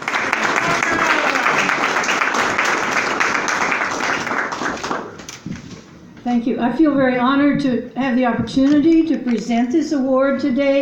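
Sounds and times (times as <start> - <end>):
audience applause: 0.0 - 5.2
speech: 6.3 - 10.7.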